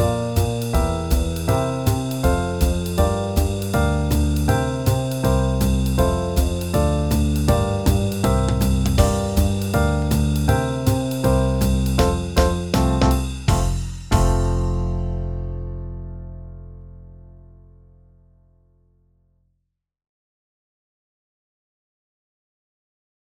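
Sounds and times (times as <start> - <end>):
backing track in F major at 160 bpm: 0.0 - 15.9.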